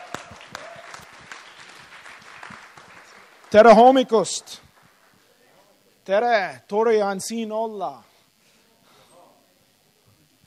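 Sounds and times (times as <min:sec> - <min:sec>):
church audience applause welcoming a preacher: 0:00.0 - 0:05.2
speech: 0:03.5 - 0:04.6, 0:06.1 - 0:08.1.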